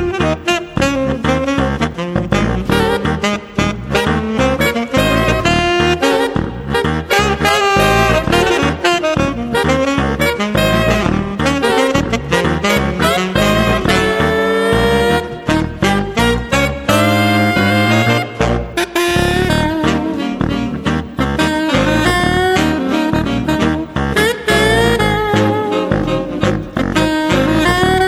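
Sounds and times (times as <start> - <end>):
tubax playing: 0.0 - 28.0.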